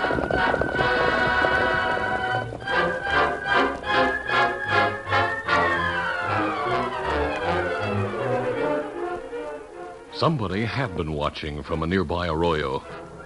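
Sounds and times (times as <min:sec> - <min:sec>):
horses galloping along a trail: 0:00.0 - 0:08.6
sustained harmonic music: 0:00.0 - 0:13.2
speech: 0:10.2 - 0:13.0.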